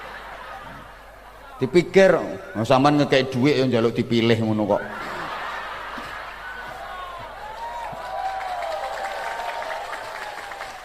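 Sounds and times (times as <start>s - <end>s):
laughter: 0.0s - 1.6s, 4.8s - 9.4s
speech: 1.6s - 5.2s
audience clapping: 6.0s - 10.8s.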